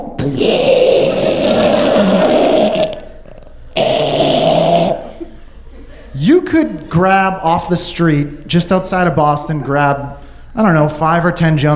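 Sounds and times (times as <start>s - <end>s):
speech: 0.2s - 0.8s, 6.6s - 11.7s
man's voice imitating breathing changing into snoring: 0.2s - 3.1s, 3.8s - 5.2s.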